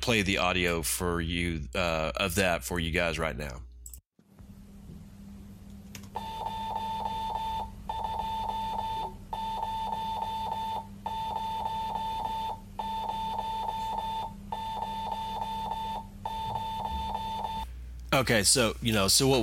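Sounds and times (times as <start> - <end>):
speech: 0.0 - 3.7, 18.2 - 19.4
Morse code transmitted over FM radio: 6.2 - 17.7.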